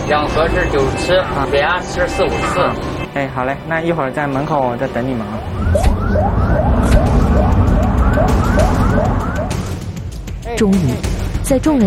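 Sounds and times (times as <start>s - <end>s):
ambulance siren: 0.0s - 3.1s, 4.9s - 9.9s
speech: 0.1s - 6.4s, 10.6s - 11.8s.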